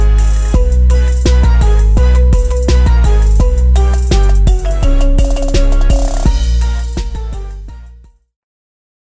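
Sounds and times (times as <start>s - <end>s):
Halloween marimba: 0.6s - 7.4s.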